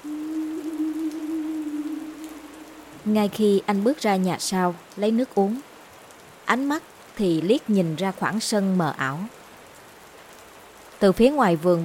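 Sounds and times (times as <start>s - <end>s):
rain falling steadily: 0.0s - 11.8s
speech: 3.0s - 5.7s, 6.5s - 9.4s, 11.0s - 11.8s.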